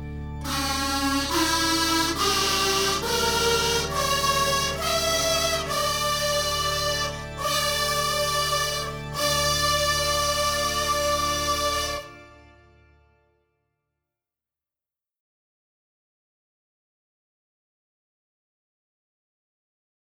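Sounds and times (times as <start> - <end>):
organ: 0.0 - 13.4
kazoos: 0.4 - 12.5.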